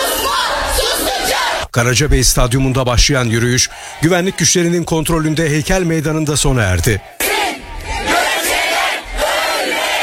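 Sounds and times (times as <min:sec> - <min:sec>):
crowd chanting protest slogans: 0:00.0 - 0:01.7, 0:03.4 - 0:04.8, 0:06.5 - 0:10.0
speech: 0:01.8 - 0:07.2.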